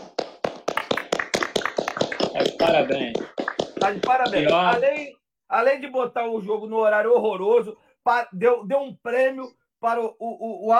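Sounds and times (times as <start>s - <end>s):
rhythmic hand clapping: 0.0s - 5.1s
speech: 2.4s - 10.7s.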